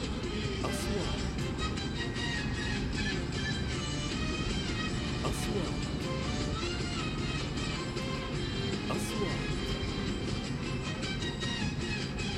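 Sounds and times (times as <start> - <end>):
cars travelling on a road: 0.0 - 12.3
radio voice: 0.3 - 1.6, 5.1 - 6.4, 8.8 - 10.0.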